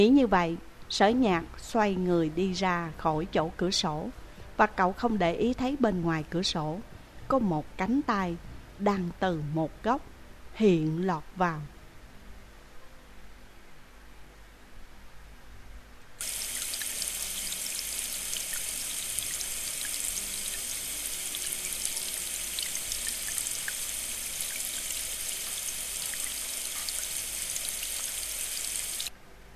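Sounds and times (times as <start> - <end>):
speech: 0.0 - 11.7
shower water running: 16.2 - 29.1.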